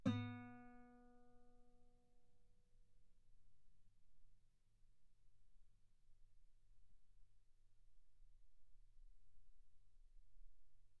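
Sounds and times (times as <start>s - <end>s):
guitar note B3: 0.0s - 0.7s.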